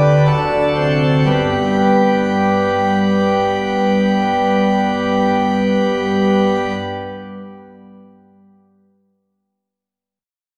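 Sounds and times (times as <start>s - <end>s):
organ playing a national anthem: 0.0s - 8.3s.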